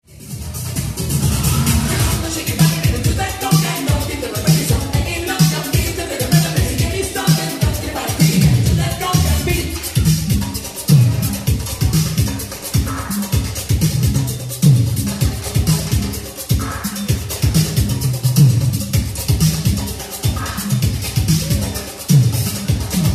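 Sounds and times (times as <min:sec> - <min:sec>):
conga drum: 0:00.0 - 0:23.1.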